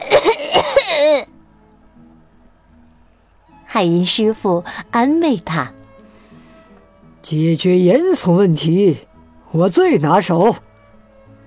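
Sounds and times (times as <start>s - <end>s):
person coughing: 0.0s - 1.3s
speech: 3.8s - 5.8s, 7.2s - 10.7s.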